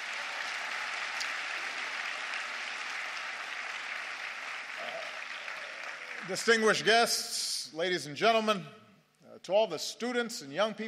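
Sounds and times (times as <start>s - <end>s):
audience applause: 0.0s - 7.0s
speech: 6.2s - 8.8s, 9.4s - 10.8s.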